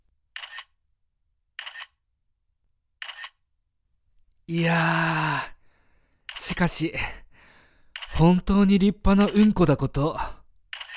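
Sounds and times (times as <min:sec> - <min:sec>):
camera shutter clicking while photographing a clogged toilet: 0:00.4 - 0:00.8, 0:01.6 - 0:02.0, 0:03.0 - 0:03.4, 0:10.7 - 0:10.9
speech: 0:04.5 - 0:05.5, 0:06.5 - 0:07.2, 0:08.2 - 0:10.4.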